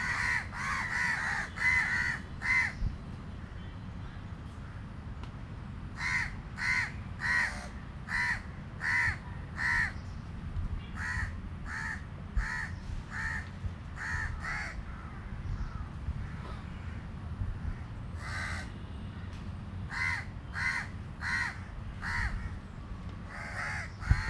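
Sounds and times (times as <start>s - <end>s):
crows cawing: 0.0s - 2.8s, 6.0s - 10.0s, 11.0s - 17.0s, 17.7s - 18.8s, 19.9s - 22.6s, 23.3s - 24.2s
steady low rumble of street traffic: 0.0s - 24.2s.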